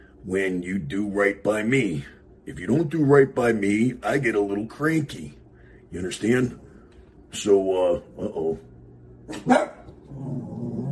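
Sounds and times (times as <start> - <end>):
speech: 0.2 - 6.6, 7.3 - 8.7, 9.3 - 10.5
dogs barking, set off by landscapers working outside: 9.3 - 10.0.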